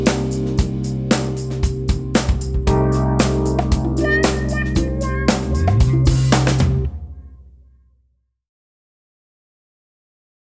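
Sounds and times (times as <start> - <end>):
rhythm guitar: 0.0 - 7.2.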